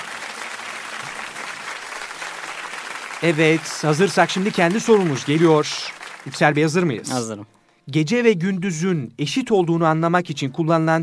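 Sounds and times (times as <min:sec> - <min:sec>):
audience applause at a quiz competition: 0:00.0 - 0:07.0
speech: 0:03.2 - 0:11.0.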